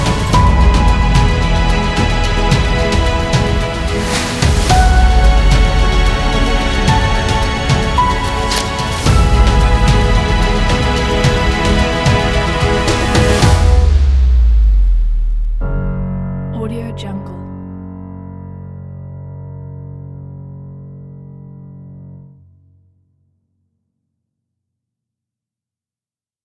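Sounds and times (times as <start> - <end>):
epic adventure music: 0.0 - 16.0.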